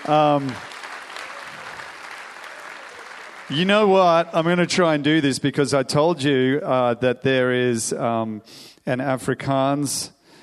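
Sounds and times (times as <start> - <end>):
speech: 0.0 - 0.7, 3.5 - 10.2
audience applause: 0.0 - 4.6.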